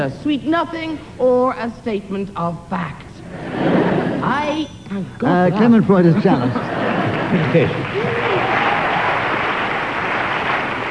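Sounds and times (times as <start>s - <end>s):
speech: 0.0s - 6.7s, 7.3s - 8.1s
laughter: 3.3s - 4.3s, 5.7s - 9.0s
studio audience applause: 6.8s - 10.8s.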